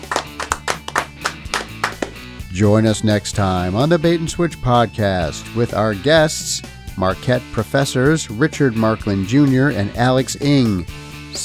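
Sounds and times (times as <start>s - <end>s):
people clapping: 0.0s - 2.2s
speech: 2.6s - 11.4s.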